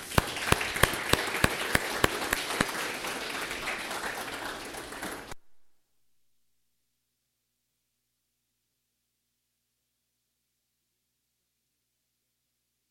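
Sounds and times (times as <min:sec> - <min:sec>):
church congregation applause welcoming a guest pastor: 0:00.0 - 0:05.4
sharp loud claps: 0:00.0 - 0:05.4.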